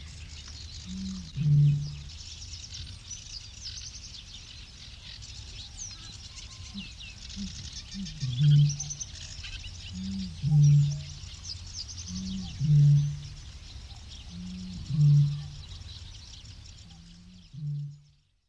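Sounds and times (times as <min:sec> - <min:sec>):
bittern call: 0:00.8 - 0:02.2, 0:05.6 - 0:18.2.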